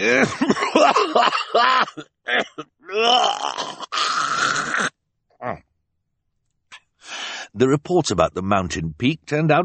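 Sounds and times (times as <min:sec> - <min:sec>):
speech: 0:00.0 - 0:01.3, 0:07.6 - 0:09.6
man coughing into a white handkerchief: 0:00.0 - 0:03.8.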